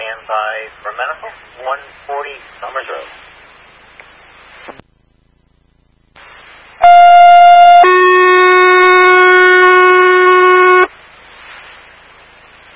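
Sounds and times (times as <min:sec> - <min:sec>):
radio static: 0:00.0 - 0:04.8, 0:06.2 - 0:12.7
speech: 0:00.3 - 0:03.3
fire dispatch alarm tone: 0:06.8 - 0:10.9.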